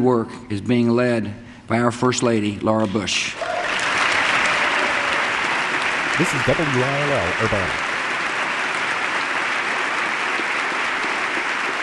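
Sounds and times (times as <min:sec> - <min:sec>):
speech: 0:00.0 - 0:03.5, 0:06.2 - 0:07.9
audience applause: 0:03.4 - 0:11.8.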